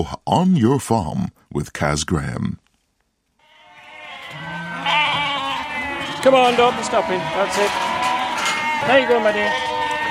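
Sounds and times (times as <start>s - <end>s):
speech: 0.0s - 2.6s, 6.2s - 7.9s, 8.8s - 9.7s
sheep bleating while moved up a runway on a farm: 3.4s - 10.0s.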